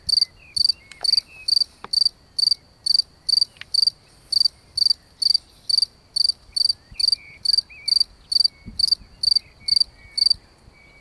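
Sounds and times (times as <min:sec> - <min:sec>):
cricket chirping on an evening walk: 0:00.0 - 0:10.9.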